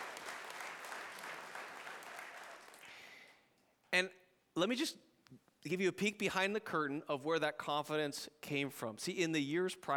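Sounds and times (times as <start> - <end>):
audience applauding: 0.0 - 3.2
speech: 4.0 - 9.9.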